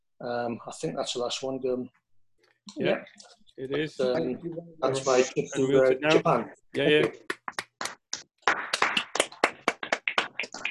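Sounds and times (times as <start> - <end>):
speech: 0.2 - 2.0, 2.6 - 7.4
people clapping on an online video call: 6.1 - 10.6.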